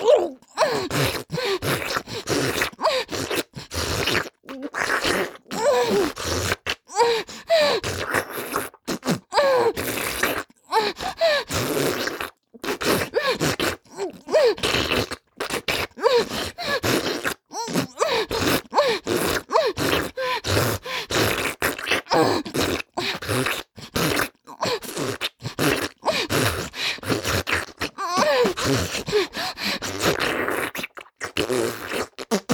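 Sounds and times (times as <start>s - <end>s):
person gagging: 0.0s - 1.1s, 5.5s - 6.2s, 17.6s - 18.3s, 27.8s - 29.5s
intense sucking sounds with vigorous head movement: 0.0s - 32.5s.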